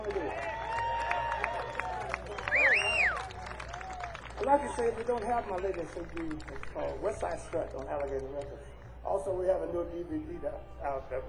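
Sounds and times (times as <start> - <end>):
audience applause for a band: 0.0 - 8.4
speech: 4.5 - 11.2.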